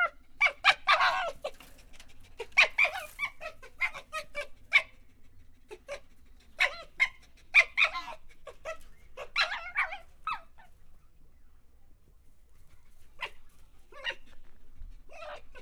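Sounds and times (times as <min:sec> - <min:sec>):
red fox calling in a zoo: 0:00.0 - 0:10.7, 0:15.1 - 0:15.6.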